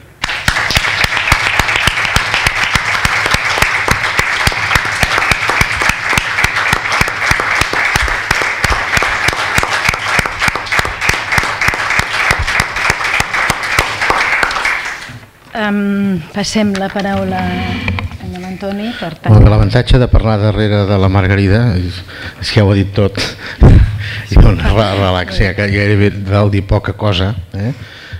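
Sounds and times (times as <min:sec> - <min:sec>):
audience applause: 0:00.2 - 0:15.2
speech: 0:15.6 - 0:17.9, 0:18.5 - 0:28.0.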